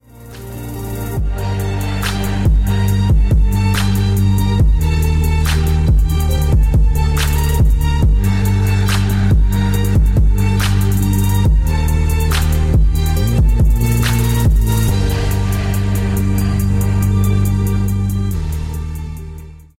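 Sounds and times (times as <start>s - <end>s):
trap beat: 0.0s - 19.7s.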